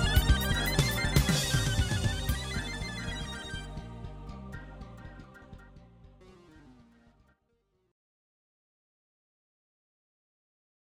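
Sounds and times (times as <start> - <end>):
synthesizer: 0.0 - 7.4.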